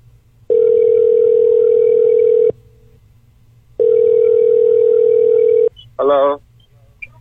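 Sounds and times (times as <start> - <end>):
telephone ringback tones: 0.5 - 2.6, 3.8 - 5.7.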